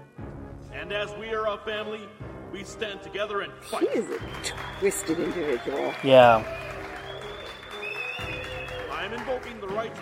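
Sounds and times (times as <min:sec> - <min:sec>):
speech: 0:00.8 - 0:06.7, 0:09.2 - 0:10.0
added crowd cheering effect: 0:03.7 - 0:10.0.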